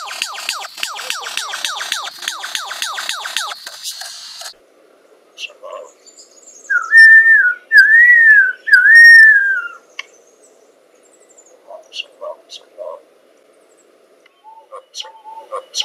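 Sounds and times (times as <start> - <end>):
lyrebird whistling: 0.0 - 4.5, 6.7 - 9.8, 14.4 - 15.8.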